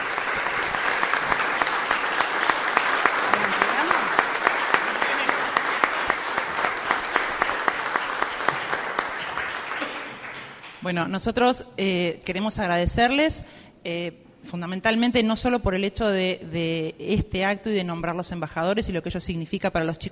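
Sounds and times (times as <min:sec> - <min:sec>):
audience applause: 0:00.0 - 0:10.8
speech: 0:10.9 - 0:20.0.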